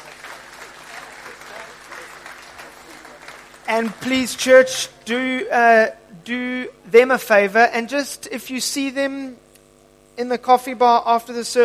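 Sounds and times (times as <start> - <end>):
church congregation applauding to welcome new members: 0.0 - 5.0
speech: 3.7 - 9.4, 10.2 - 11.6.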